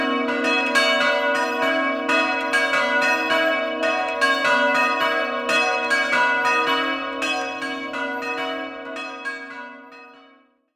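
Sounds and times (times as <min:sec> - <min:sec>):
bells ringing in Ovoledo: 0:00.0 - 0:10.3.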